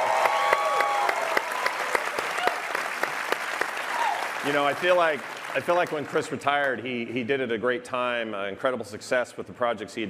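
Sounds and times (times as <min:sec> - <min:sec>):
audience applause: 0:00.0 - 0:06.7
speech: 0:04.4 - 0:10.0.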